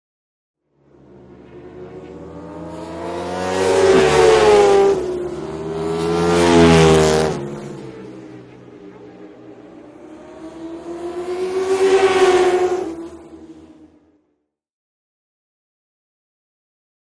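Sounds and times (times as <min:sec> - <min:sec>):
motorcycles road racing: 0:00.7 - 0:14.3.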